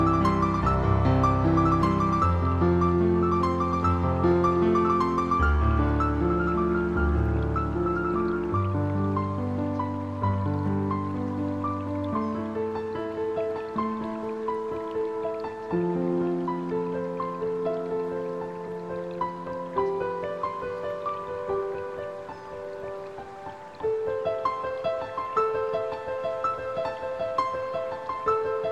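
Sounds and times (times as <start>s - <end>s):
relaxing instrumental piano music: 0.0s - 28.6s.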